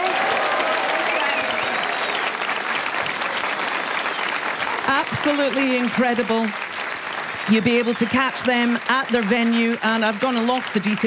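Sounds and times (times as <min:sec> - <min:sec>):
audience shouting: 0:00.0 - 0:02.5
audience applauding in the Spiegel Tent: 0:00.0 - 0:11.0
speech: 0:05.1 - 0:06.6, 0:07.5 - 0:11.0.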